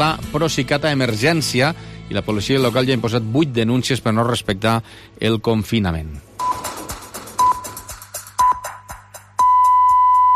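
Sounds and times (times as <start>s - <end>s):
speech: 0.0s - 6.6s
radio time signal pips: 6.4s - 6.8s, 7.4s - 10.3s.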